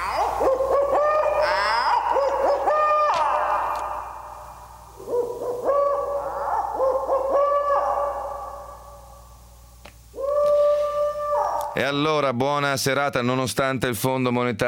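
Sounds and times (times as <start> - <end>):
owl hooting: 0.0 - 9.5, 10.1 - 11.8
speech: 11.9 - 14.6.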